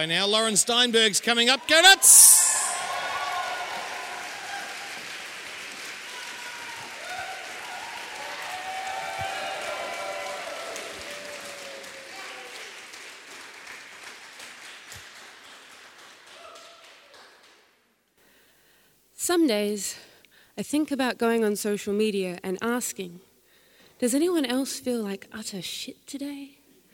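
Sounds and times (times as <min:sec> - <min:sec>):
speech: 0:00.0 - 0:02.6, 0:19.3 - 0:23.3, 0:24.0 - 0:26.6
audience applauding for a poet: 0:00.0 - 0:17.7.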